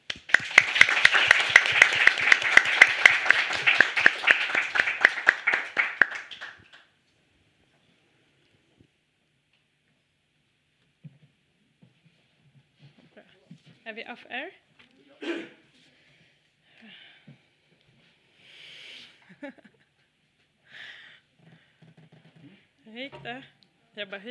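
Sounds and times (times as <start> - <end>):
audience applause for a panel: 0.0 - 6.9
speech: 14.0 - 14.6, 23.2 - 24.2.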